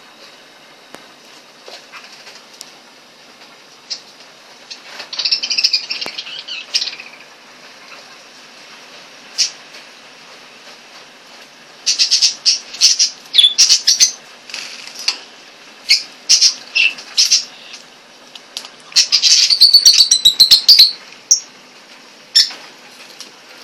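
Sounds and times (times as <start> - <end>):
Eclectus parrot calls: 5.1 - 7.3, 11.8 - 14.2, 15.8 - 17.8, 18.9 - 21.5, 22.3 - 22.6.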